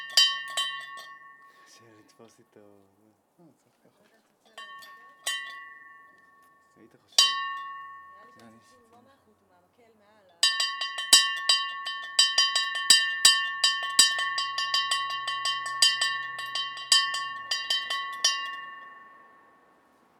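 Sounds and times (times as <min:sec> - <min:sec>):
hand bell ringing: 0:00.0 - 0:01.8, 0:04.6 - 0:08.8, 0:10.3 - 0:19.8.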